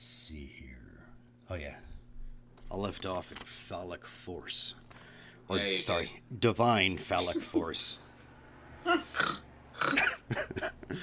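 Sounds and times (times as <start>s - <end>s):
speech: 1.5s - 1.9s, 2.7s - 4.8s, 5.5s - 8.0s, 8.8s - 11.0s
person snorting: 8.9s - 10.2s.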